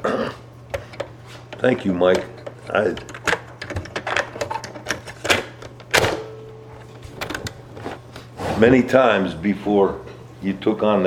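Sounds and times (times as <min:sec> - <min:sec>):
cassette tape being turned over in a recorder, plastic clicks and clunks: 0:00.7 - 0:07.9
speech: 0:01.6 - 0:03.2, 0:08.6 - 0:11.0.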